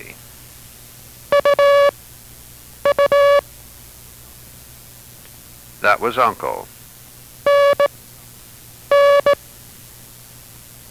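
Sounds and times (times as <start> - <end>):
faint hum: 0.0 - 10.8
buzzy Morse code tone sending the letter N: 1.3 - 1.9, 2.8 - 3.4, 7.5 - 7.9, 8.9 - 9.4
speech: 5.8 - 6.8.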